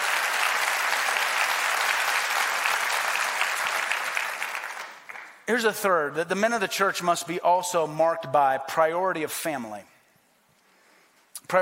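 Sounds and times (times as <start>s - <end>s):
audience applauding: 0.0s - 5.4s
speech: 5.5s - 9.9s.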